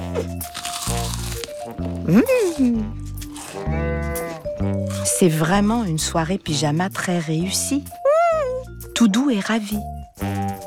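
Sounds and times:
popcorn crunching: 0.0s - 5.6s
speech: 0.2s - 0.6s, 2.1s - 3.0s, 5.2s - 8.0s, 9.0s - 10.4s.

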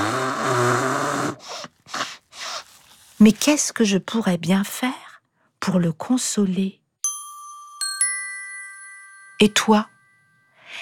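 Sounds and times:
person blowing nose: 0.0s - 2.9s
speech: 3.2s - 5.0s, 5.6s - 6.8s, 9.4s - 9.9s.

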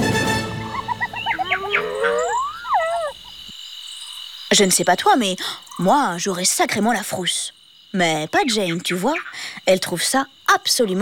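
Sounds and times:
hyenas cackling: 0.4s - 3.5s
lions roaring: 1.2s - 3.2s
speech: 4.5s - 10.9s.

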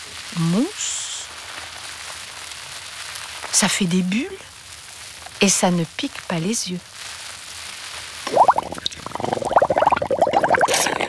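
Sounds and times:
speech: 0.4s - 0.9s, 3.6s - 4.5s, 5.4s - 6.9s
water splashing and sloshing in a bathroom sink: 8.3s - 11.0s.

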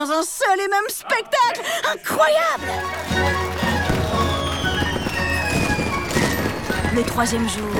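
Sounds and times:
speech: 0.0s - 3.5s, 6.9s - 7.7s
spectacular fireworks display over Alcina's palace: 2.6s - 7.7s.

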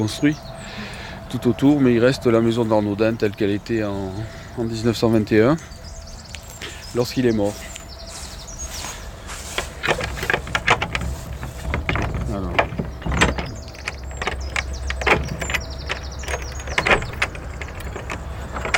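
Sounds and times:
speech: 0.0s - 0.5s, 1.3s - 5.8s, 6.9s - 7.7s
old Gascon door lock being unlocked at Arnaudin's house: 9.6s - 18.7s.

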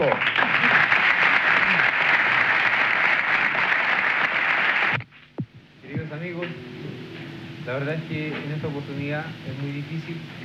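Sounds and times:
speech: 0.0s - 0.3s, 7.8s - 10.4s
audience applause: 0.0s - 5.0s.

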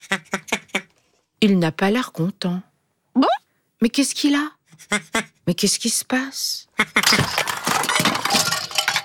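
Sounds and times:
speech: 1.4s - 8.1s
toys and books tumbling down: 7.0s - 9.0s.

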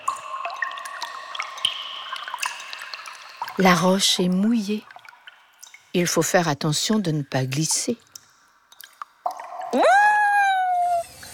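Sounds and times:
water drips down damp cave walls: 0.0s - 11.3s
speech: 3.6s - 4.9s, 6.0s - 8.0s.

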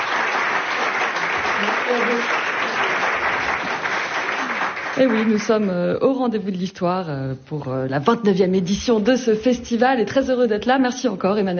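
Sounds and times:
live audience applause: 0.0s - 5.6s
speech: 5.0s - 11.5s.

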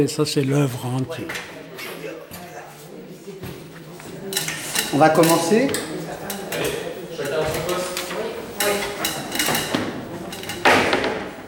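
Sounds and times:
speech: 0.0s - 1.6s, 4.9s - 5.9s
ceramic plate artwork being taken down from a display, clinking and knocking: 4.2s - 11.4s.

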